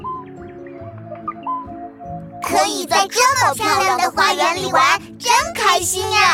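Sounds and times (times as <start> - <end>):
small birds singing: 0.0 - 1.4
speech: 2.5 - 6.3.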